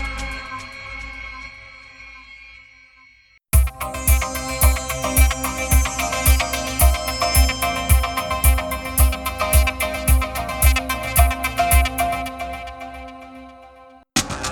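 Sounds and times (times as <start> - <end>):
single sustained note: 3.5 - 14.1.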